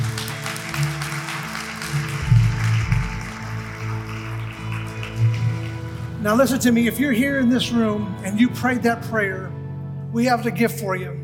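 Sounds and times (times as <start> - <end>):
audience clapping hands: 0.0 - 6.4
low sustained musical tones: 0.0 - 11.2
speech: 6.2 - 11.2.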